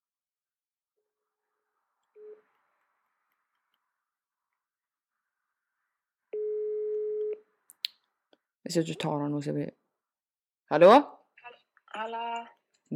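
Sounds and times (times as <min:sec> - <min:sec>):
telephone ringback tone from an outgoing call: 0:06.4 - 0:07.4
speech: 0:08.7 - 0:09.8, 0:10.7 - 0:11.2, 0:12.0 - 0:12.9.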